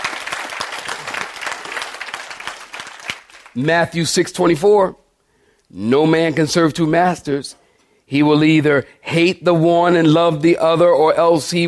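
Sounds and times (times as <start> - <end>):
audience applause: 0.0 - 3.6
speech: 3.6 - 5.0, 5.7 - 11.6.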